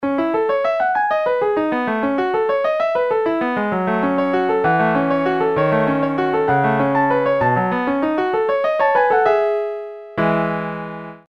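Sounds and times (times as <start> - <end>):
piano: 0.0 - 11.3.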